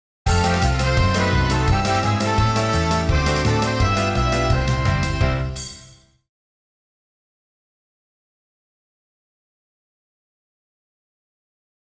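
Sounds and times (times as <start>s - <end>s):
game show intro music: 0.3s - 6.0s.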